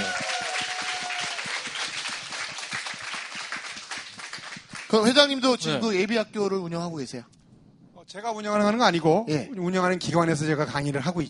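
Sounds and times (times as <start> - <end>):
audience applause: 0.0 - 5.1
speech: 4.9 - 7.4, 8.1 - 11.2.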